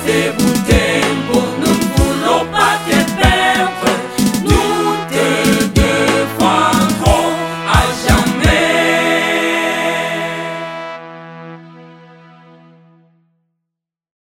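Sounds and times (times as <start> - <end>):
hymn: 0.0 - 11.0.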